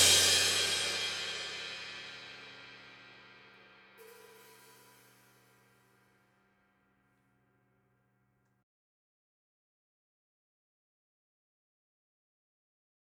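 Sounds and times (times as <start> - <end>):
drums through a room microphone: 0.0 - 5.9.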